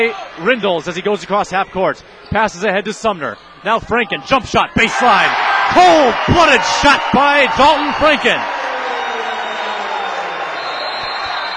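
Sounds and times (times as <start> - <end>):
speech: 0.0 - 8.5
basketball crowd erupting in cheers: 4.2 - 11.5.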